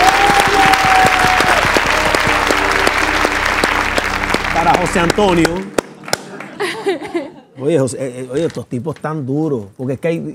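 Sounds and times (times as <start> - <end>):
audience applause: 0.0 - 6.9
speech: 4.8 - 5.8, 6.9 - 10.3
laughter: 6.3 - 7.6.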